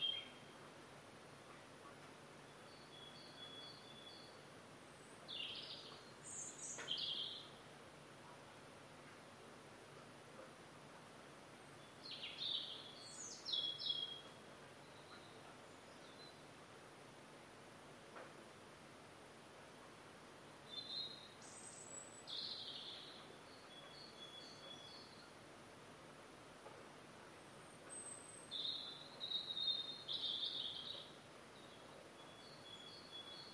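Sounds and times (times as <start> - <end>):
early morning birds singing right outside the window: 2.4 - 7.6, 11.6 - 16.6, 20.5 - 25.4, 27.6 - 33.5.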